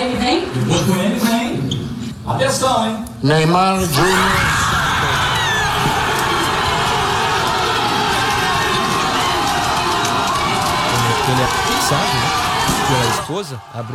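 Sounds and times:
speech: 0.4 - 1.4, 2.3 - 4.7, 11.3 - 13.9
crowd cheering at a celebration: 3.9 - 13.9.

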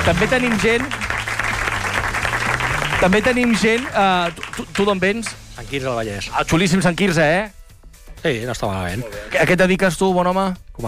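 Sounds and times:
speech: 0.0 - 1.0, 3.0 - 7.6, 8.2 - 10.8
audience applause: 0.0 - 5.3.

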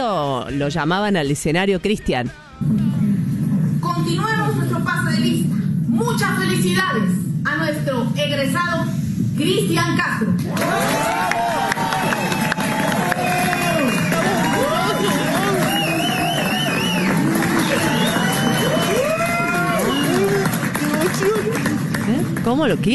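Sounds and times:
speech: 0.0 - 3.0, 4.1 - 11.6, 22.5 - 22.9
crowd cheering: 10.4 - 22.0
applause: 10.4 - 22.9
excited shouts: 10.5 - 16.6, 17.7 - 20.2.

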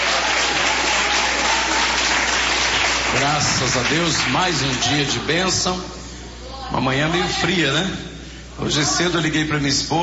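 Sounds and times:
audience clapping: 0.0 - 5.2
speech: 3.3 - 6.0, 6.7 - 10.0.

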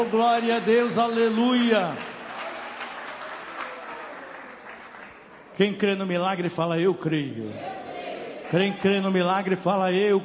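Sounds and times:
speech: 0.0 - 2.2, 5.6 - 7.7, 8.5 - 10.2
church congregation clapping at a service: 0.0 - 5.9.

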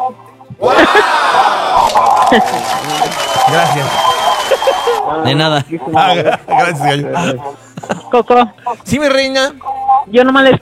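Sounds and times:
laughter: 0.6 - 5.0, 5.9 - 8.2
voices shouting: 0.6 - 5.0
loud crowd applause: 0.8 - 5.0
speech: 2.3 - 10.6.

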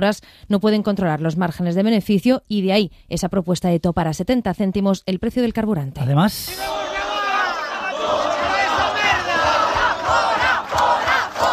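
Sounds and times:
speech: 0.0 - 6.9
large crowd of protesters shouting and chanting: 6.6 - 11.5
rhythmic low thumps: 8.2 - 11.5.

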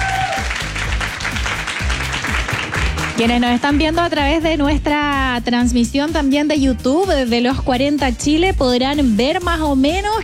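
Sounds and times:
audience applause: 0.0 - 4.0
speech: 3.2 - 10.2.

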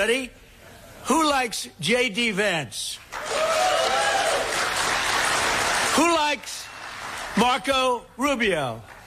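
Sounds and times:
speech: 0.0 - 0.4, 1.0 - 3.6, 6.0 - 6.7, 7.4 - 8.9
audience applause at a Trump event: 3.1 - 7.6.

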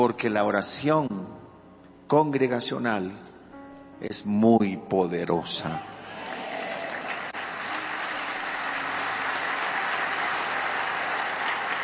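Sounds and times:
speech: 0.0 - 1.3, 2.1 - 3.3, 4.0 - 6.0
audience applauding: 6.0 - 11.8.

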